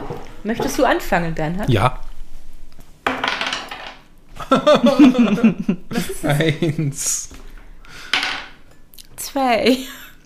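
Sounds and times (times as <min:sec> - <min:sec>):
speech: 0:00.4 - 0:02.1, 0:04.5 - 0:07.4, 0:09.3 - 0:10.2
dice being rolled: 0:03.1 - 0:04.0
laughter: 0:04.4 - 0:07.2.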